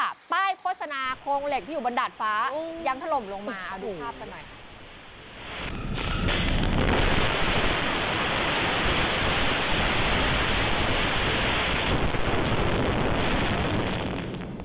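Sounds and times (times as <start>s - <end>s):
speech: 0.5s - 4.6s
heavy rain: 4.5s - 14.6s
strong wind: 4.5s - 14.6s.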